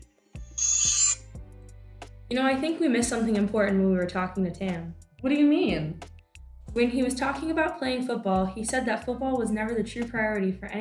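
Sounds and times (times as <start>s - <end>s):
time machine whizzing high whine: 0.6s - 1.2s
speech: 2.3s - 6.0s, 6.8s - 10.8s.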